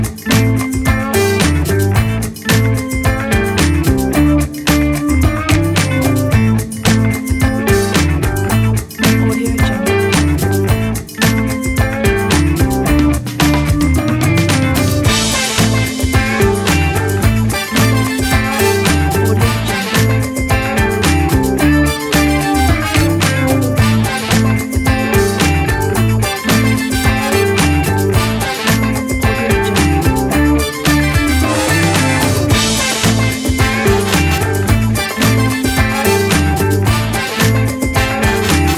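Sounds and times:
funky groove background music: 0.0 - 38.7.

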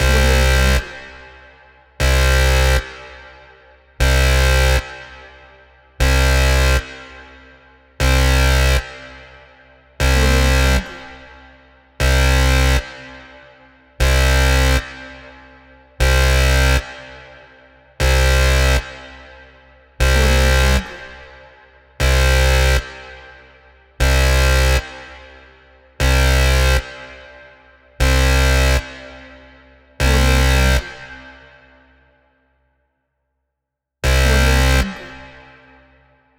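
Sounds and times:
alarm siren: 0.0 - 1.2, 2.0 - 3.1, 4.0 - 5.0, 6.0 - 7.4, 8.0 - 9.4, 10.0 - 11.2, 12.0 - 13.4, 14.0 - 15.2, 16.0 - 19.3, 20.0 - 21.2, 22.0 - 23.2, 24.0 - 25.1, 26.0 - 27.2, 28.0 - 29.2, 30.0 - 31.3, 34.0 - 36.1.

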